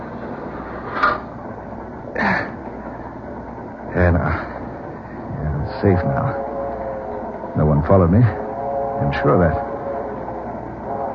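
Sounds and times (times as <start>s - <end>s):
freight train boxcar rolling: 0.0s - 11.1s
speech: 5.8s - 6.5s, 7.6s - 8.4s, 9.0s - 9.7s.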